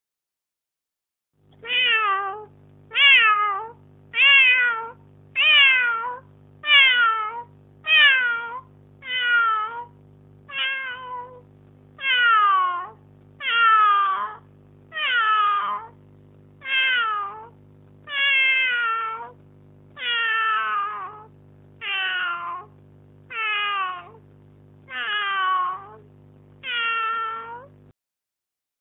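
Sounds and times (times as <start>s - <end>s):
kitten meowing: 1.6s - 9.9s, 10.5s - 11.4s, 12.0s - 16.0s, 16.6s - 19.4s, 20.0s - 22.7s, 23.3s - 24.2s, 24.9s - 26.0s, 26.6s - 27.7s.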